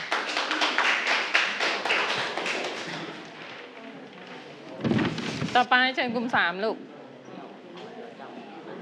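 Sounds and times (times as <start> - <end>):
audience clapping for a group: 0.0 - 3.4
speech: 5.6 - 6.9.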